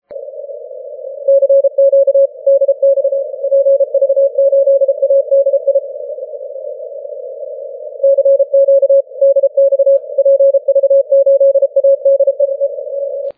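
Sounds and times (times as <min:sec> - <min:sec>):
6m CW morse code signal: 0:00.2 - 0:13.3.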